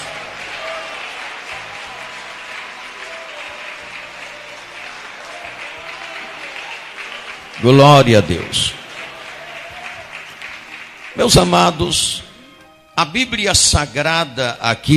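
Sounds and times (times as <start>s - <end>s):
people shouting praise: 0.0s - 10.3s
audience applause: 0.0s - 12.4s
speech: 7.6s - 8.8s, 11.2s - 12.2s, 13.0s - 14.9s.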